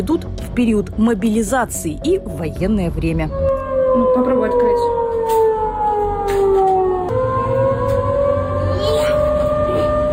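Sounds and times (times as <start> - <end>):
speech: 0.0 - 5.0
air raid warning siren wailing: 3.0 - 10.1.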